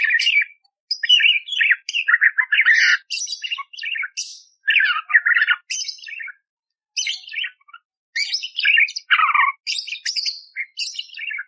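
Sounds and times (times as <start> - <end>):
budgerigar warbling song: 0.0 - 6.4, 7.0 - 11.4.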